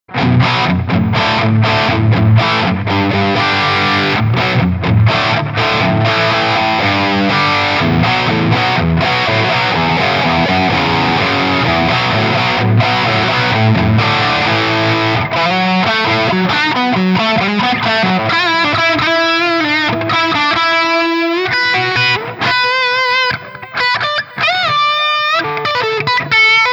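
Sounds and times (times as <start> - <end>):
electric guitar through Valeton GP 200 Plexi with boost: 0.0 - 26.7.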